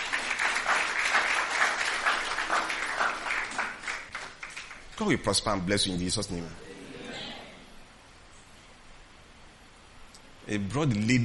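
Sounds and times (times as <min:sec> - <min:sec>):
crowd clapping for a person: 0:00.0 - 0:05.2
speech: 0:05.0 - 0:06.7, 0:10.5 - 0:11.2.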